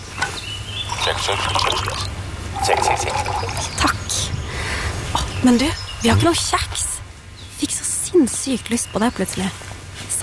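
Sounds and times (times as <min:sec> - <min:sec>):
coffee poured into a cup: 0:00.9 - 0:03.8
speech: 0:01.1 - 0:04.4, 0:05.4 - 0:06.9, 0:07.6 - 0:09.6.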